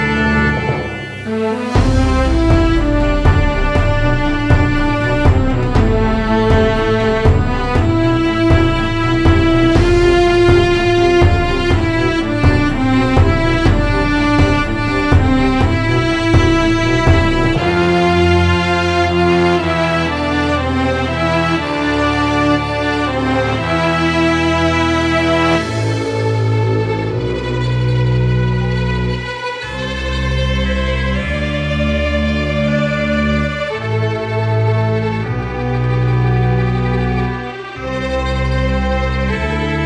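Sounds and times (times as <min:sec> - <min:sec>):
hectic epic adventure orchestral music: 0:00.0 - 0:39.8.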